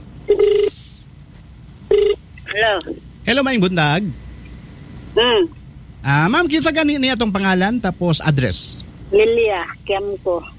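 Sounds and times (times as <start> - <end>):
telephone ringing tone on a call to a radio call-in show: 0.3 - 0.7, 1.9 - 2.2
speech: 2.6 - 4.2, 5.2 - 10.5.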